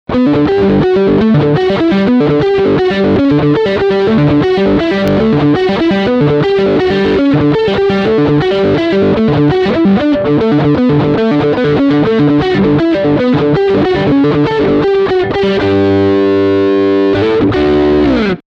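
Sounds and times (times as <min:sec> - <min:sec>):
electric guitar lick on middle single-coil pickup: 0:00.1 - 0:18.4.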